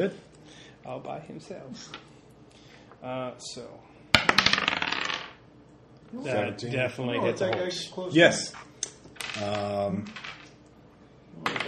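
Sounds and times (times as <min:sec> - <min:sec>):
speech: 0:00.0 - 0:02.1, 0:03.0 - 0:04.8, 0:06.1 - 0:08.7, 0:09.4 - 0:10.3
dice rolling on a hard table: 0:04.2 - 0:05.4, 0:08.5 - 0:10.6, 0:11.4 - 0:11.6.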